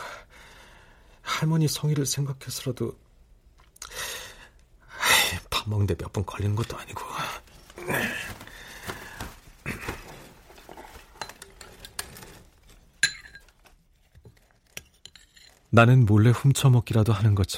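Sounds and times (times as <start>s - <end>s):
speech: 1.4s - 3.0s, 5.7s - 8.1s, 15.8s - 17.5s
spoon clinking against dishes at a table: 13.0s - 13.6s.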